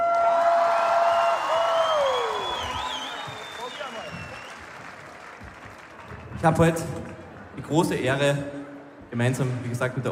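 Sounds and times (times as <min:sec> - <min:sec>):
crowd applauding: 0:00.0 - 0:08.3
shrill whistles: 0:01.2 - 0:04.7
speech: 0:06.4 - 0:07.0, 0:07.7 - 0:08.6, 0:09.2 - 0:10.1.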